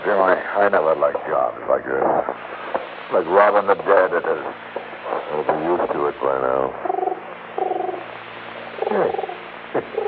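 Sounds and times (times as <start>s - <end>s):
speech: 0.0s - 4.7s, 5.3s - 7.0s, 8.9s - 10.0s
steady low hum: 0.0s - 10.0s
pigeon cooing on a windowsill: 6.8s - 8.1s, 8.8s - 10.0s.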